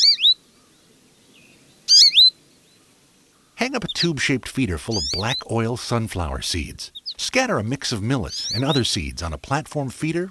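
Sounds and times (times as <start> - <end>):
songbird calls: 0.0 - 10.2
speech: 3.6 - 10.2.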